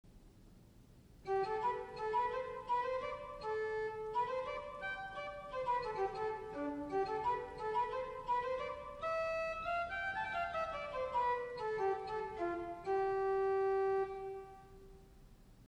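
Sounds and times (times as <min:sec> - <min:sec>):
mixolydian tune: 0:01.3 - 0:15.0.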